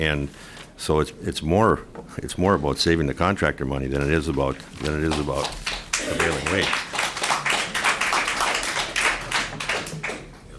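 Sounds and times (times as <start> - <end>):
speech: 0.0 - 6.9
crowd applauding in a committee hearing: 5.1 - 10.4.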